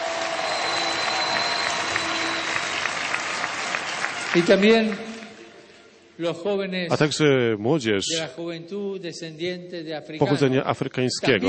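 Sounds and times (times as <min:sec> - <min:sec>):
audience applause: 0:00.0 - 0:05.8
speech: 0:04.4 - 0:05.1, 0:06.2 - 0:11.4.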